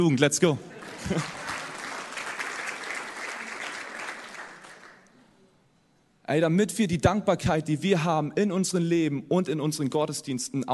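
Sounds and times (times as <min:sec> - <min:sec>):
speech: 0:00.0 - 0:01.4, 0:06.3 - 0:10.7
laughter: 0:00.6 - 0:02.1
audience clapping: 0:00.8 - 0:05.2.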